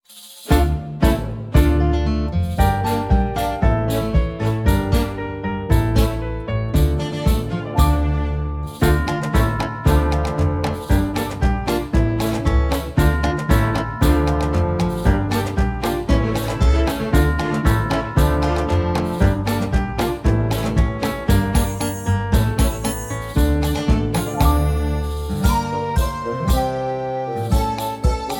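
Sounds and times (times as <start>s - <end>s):
Christmas carol backing music: 0.5s - 28.3s.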